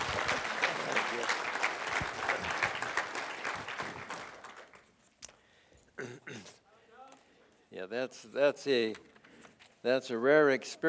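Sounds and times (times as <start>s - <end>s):
audience applause: 0.0s - 4.9s
speech: 7.9s - 9.1s, 9.8s - 10.8s.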